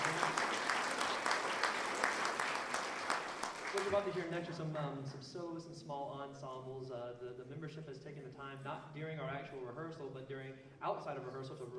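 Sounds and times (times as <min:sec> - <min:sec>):
audience applause: 0:00.0 - 0:04.3
speech: 0:03.8 - 0:11.7.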